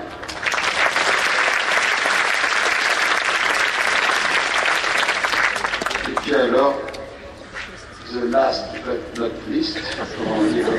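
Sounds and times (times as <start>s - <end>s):
crowd applause: 0.0s - 6.5s
speech: 8.3s - 10.7s
laughter: 9.7s - 10.7s.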